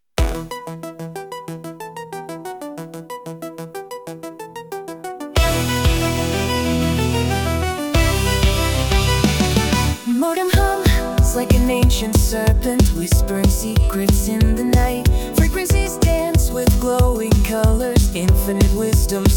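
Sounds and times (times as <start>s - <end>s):
1980s pop rock music: 0.2s - 0.6s, 5.4s - 19.3s.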